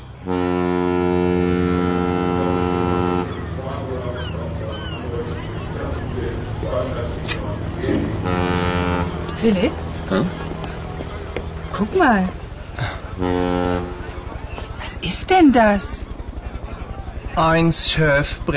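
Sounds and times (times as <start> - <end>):
harbour dock ambience with ships in Hamburg: 0.1 - 18.5
speech: 9.4 - 10.3, 12.0 - 12.4, 15.2 - 16.1, 17.4 - 18.5.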